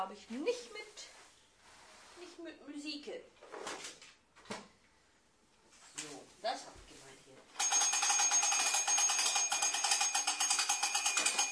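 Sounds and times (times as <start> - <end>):
speech: 0.0 - 1.1, 2.2 - 4.6, 6.0 - 7.8
alarm ringing in a high rapidly pulsing tone: 7.6 - 11.5.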